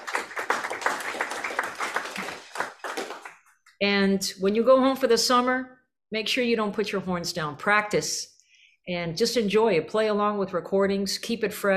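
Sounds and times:
crowd applause: 0:00.0 - 0:03.5
speech: 0:03.8 - 0:11.7.

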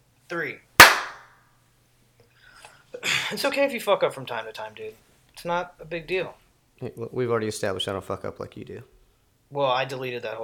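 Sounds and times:
speech: 0:00.3 - 0:00.7, 0:02.9 - 0:10.4
hand clap for recording sync: 0:00.8 - 0:01.2.

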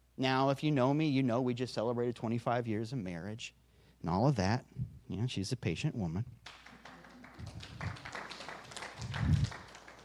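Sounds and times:
speech: 0:00.2 - 0:06.6
audience clapping: 0:06.4 - 0:10.0.

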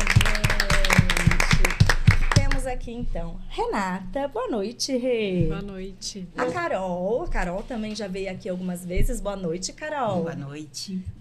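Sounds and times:
round of applause: 0:00.0 - 0:02.7
speech: 0:02.8 - 0:11.2.

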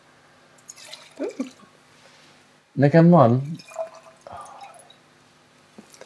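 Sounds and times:
faint drips: 0:00.6 - 0:01.7, 0:03.4 - 0:05.1
wine being poured into a glass: 0:00.6 - 0:01.7, 0:03.4 - 0:05.0
speech: 0:02.8 - 0:03.7.

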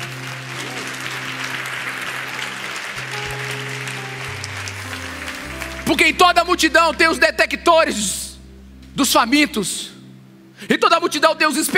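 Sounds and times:
audience applauding: 0:00.0 - 0:07.2
sustained low organ or keyboard tones: 0:00.0 - 0:11.7
speech: 0:05.9 - 0:08.2, 0:09.0 - 0:09.9, 0:10.6 - 0:11.7.

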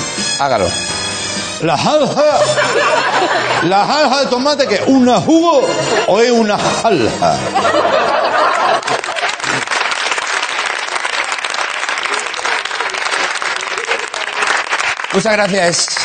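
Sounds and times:
speech: 0:00.4 - 0:01.0, 0:01.6 - 0:08.2, 0:15.1 - 0:16.0
jury laughing: 0:01.7 - 0:14.8
jury applauding: 0:08.0 - 0:16.0.

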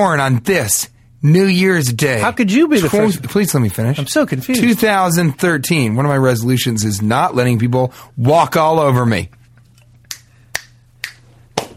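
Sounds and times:
speech: 0:00.0 - 0:09.4
low steady hum: 0:00.0 - 0:11.7
crisp finger snaps: 0:10.0 - 0:11.7
slap on the buttocks: 0:10.6 - 0:11.7.

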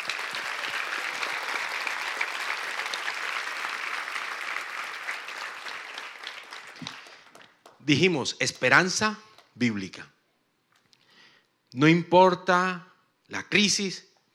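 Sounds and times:
audience applause: 0:00.0 - 0:07.8
speech: 0:07.9 - 0:10.2, 0:11.7 - 0:14.3.

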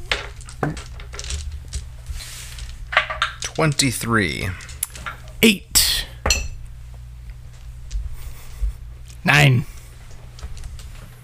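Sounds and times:
dice rattling in a cloth dice bag: 0:00.0 - 0:05.4
speech: 0:00.6 - 0:00.9, 0:03.6 - 0:04.6, 0:05.4 - 0:05.7, 0:09.4 - 0:09.7.

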